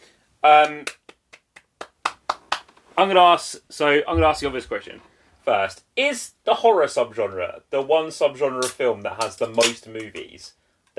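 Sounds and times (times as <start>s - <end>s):
speech: 0.4s - 1.0s, 3.0s - 10.9s
hands clapping: 0.5s - 2.8s.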